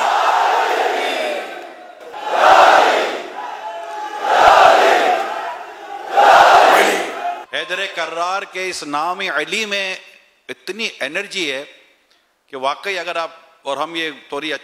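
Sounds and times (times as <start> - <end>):
crowd at a religious gathering honouring Ali chanting: 0.0 - 7.5
speech: 7.7 - 11.8, 12.5 - 14.6.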